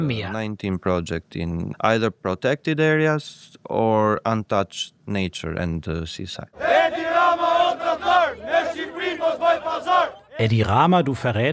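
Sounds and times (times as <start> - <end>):
speech: 0.0 - 7.0, 9.1 - 11.5
protesters chanting slogans: 6.6 - 10.4.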